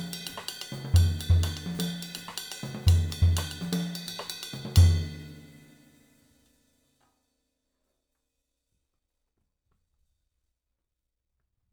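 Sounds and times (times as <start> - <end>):
Zildjian 20-inch Custom cymbal: 0.0 - 6.2.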